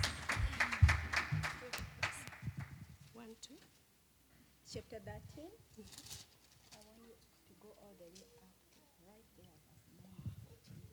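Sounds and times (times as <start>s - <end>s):
audience clapping: 0.0s - 2.8s
speech: 4.7s - 6.2s, 7.6s - 9.6s.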